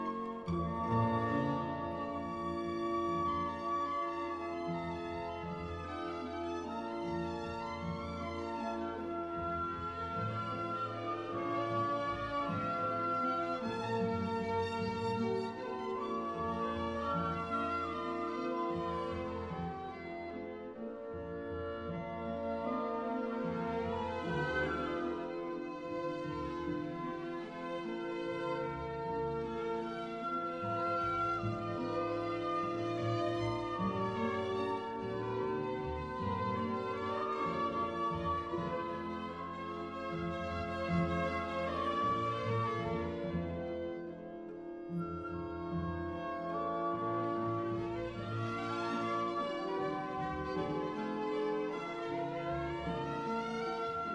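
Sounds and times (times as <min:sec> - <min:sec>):
symphony in D minor: 0:00.0 - 0:54.1.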